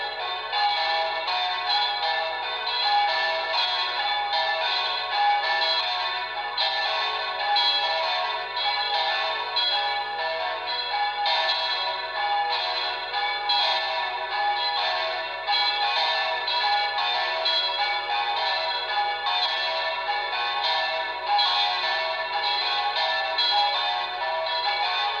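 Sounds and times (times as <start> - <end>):
bells ringing: 0.0 - 25.1.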